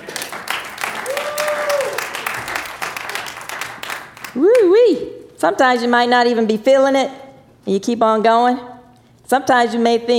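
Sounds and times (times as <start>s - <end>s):
audience applause: 0.0s - 4.6s
speech: 4.4s - 8.7s, 9.3s - 10.1s.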